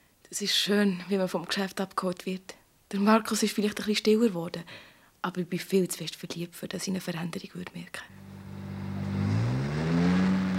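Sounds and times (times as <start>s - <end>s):
speech: 0.3s - 8.2s
Jaguar car engine purring and revving up: 8.1s - 10.5s.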